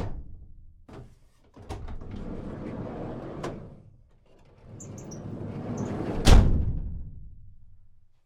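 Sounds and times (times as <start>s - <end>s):
medium size panel van side sliding door: 1.6s - 6.6s.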